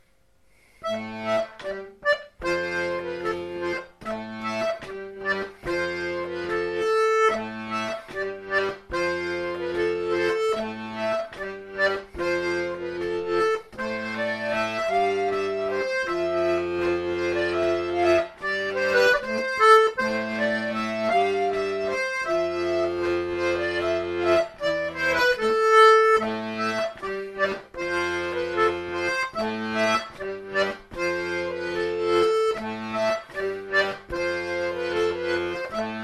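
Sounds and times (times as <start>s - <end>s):
rondeau on diatonic accordion: 0.0s - 36.0s.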